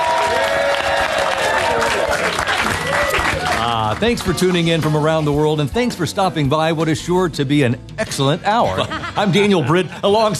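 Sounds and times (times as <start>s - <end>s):
live studio audience in Nashville whooping: 0.0s - 3.9s
live studio audience in Nashville applauding: 0.0s - 4.5s
speech: 4.0s - 10.3s
laughter: 8.6s - 10.3s.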